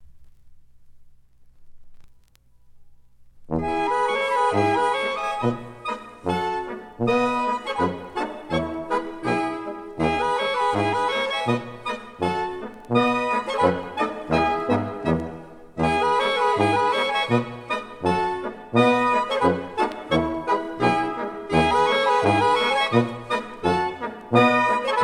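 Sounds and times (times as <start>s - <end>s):
schottische dance music: 3.5s - 25.0s.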